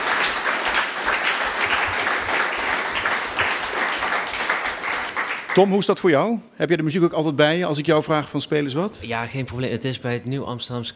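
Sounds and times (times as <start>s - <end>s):
audience applause: 0.0s - 5.8s
speech: 5.6s - 10.9s.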